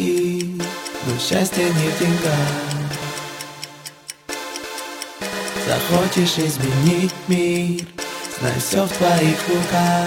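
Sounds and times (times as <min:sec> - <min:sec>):
clock ticking: 0:00.0 - 0:10.0
speech: 0:01.0 - 0:02.7, 0:05.7 - 0:10.0.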